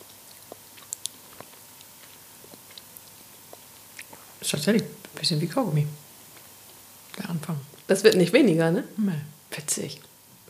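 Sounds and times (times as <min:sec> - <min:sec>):
soft chewing of mild meadow plant buds: 0:00.0 - 0:05.4, 0:06.2 - 0:08.3
speech: 0:04.4 - 0:06.0, 0:07.3 - 0:10.1.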